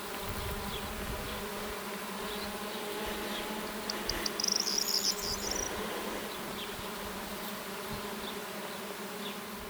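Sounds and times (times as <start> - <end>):
bees humming: 0.1 - 9.6
bird twittering: 3.8 - 6.6.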